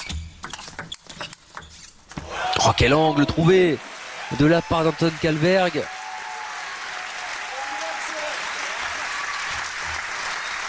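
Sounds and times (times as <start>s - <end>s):
speech: 2.7s - 6.0s
arena crowd applauding in Malmö Arena: 3.4s - 10.6s.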